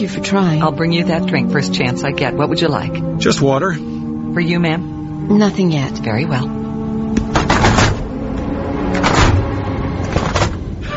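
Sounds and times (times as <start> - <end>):
speech: 0.0 - 7.8
steady low rumbling hum: 0.0 - 10.8
aircraft cabin door being closed with metallic clunks: 7.1 - 10.6.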